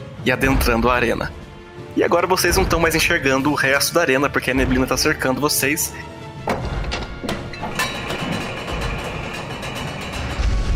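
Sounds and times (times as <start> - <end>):
speech: 0.2 - 1.4, 2.0 - 6.6
heavy metal gate closing: 6.4 - 10.7
grinding, rattling rumble of metal gate: 6.5 - 10.7.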